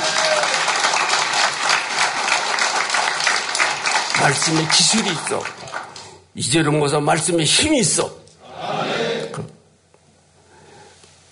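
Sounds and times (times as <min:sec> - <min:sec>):
audience clapping: 0:00.0 - 0:06.2
speech: 0:04.2 - 0:05.8, 0:06.4 - 0:08.2.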